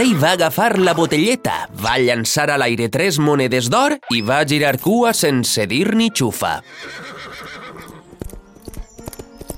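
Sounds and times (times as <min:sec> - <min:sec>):
speech: 0:00.0 - 0:07.6
horse galloping hooves: 0:06.8 - 0:09.5.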